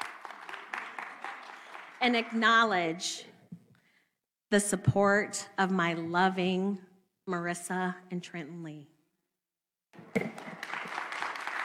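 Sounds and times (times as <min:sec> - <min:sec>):
audience clapping: 0:00.0 - 0:02.7, 0:10.0 - 0:11.6
speech: 0:02.0 - 0:03.3, 0:04.5 - 0:08.9.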